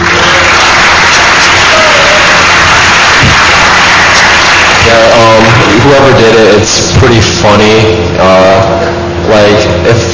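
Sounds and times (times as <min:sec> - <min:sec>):
round of applause: 0:00.0 - 0:05.9
speech: 0:05.9 - 0:10.1.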